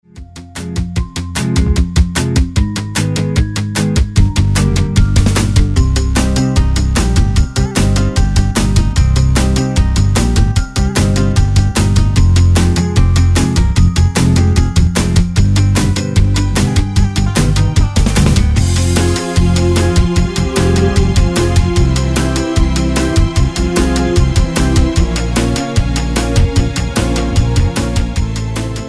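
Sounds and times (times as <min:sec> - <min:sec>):
instrumental music: 0:00.0 - 0:28.8.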